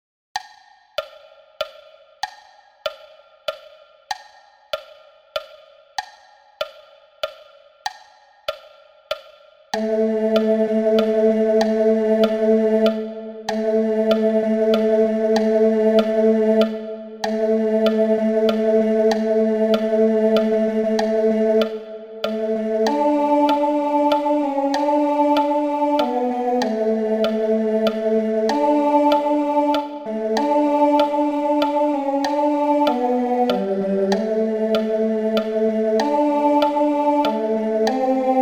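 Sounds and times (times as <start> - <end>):
person singing: 9.8 - 38.4.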